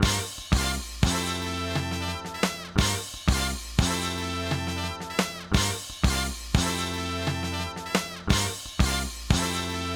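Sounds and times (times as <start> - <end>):
horn section playing: 0.0 - 9.9.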